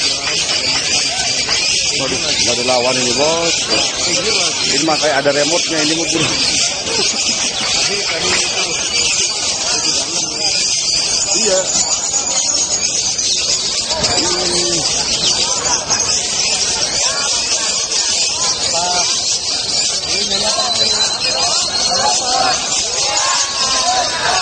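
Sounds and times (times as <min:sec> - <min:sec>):
laughter: 0:00.0 - 0:10.5, 0:20.0 - 0:24.4
lovebird chattering song in ngekek style: 0:00.0 - 0:24.0.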